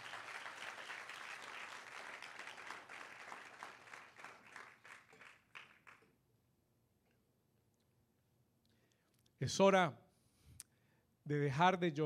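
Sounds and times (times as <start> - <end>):
audience applause: 0.0 - 6.1
speech: 9.4 - 10.0, 11.3 - 12.0.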